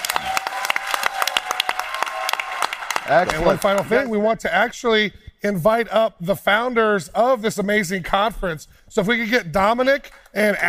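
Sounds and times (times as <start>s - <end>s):
faint audience cheering: 0.0s - 4.1s
audience applauding: 0.0s - 4.2s
speech: 3.1s - 10.6s.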